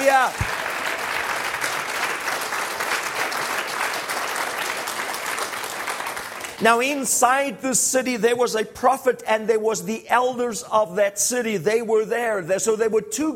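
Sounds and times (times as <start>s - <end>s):
speech: 0.0s - 0.6s, 6.6s - 13.3s
audience applauding: 0.0s - 7.0s.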